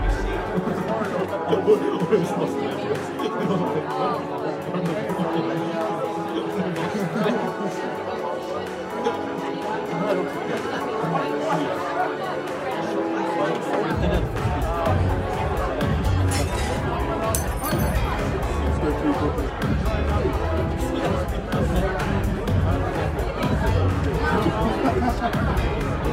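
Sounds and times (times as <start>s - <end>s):
many voices chattering in a bar: 0.0s - 26.1s
laughter: 0.1s - 26.1s.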